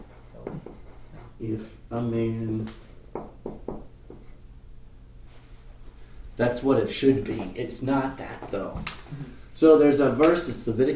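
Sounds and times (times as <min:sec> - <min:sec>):
scratchy writing strokes of a Bible verse written by hand: 0:00.0 - 0:01.4
speech: 0:01.4 - 0:02.9, 0:06.4 - 0:10.9.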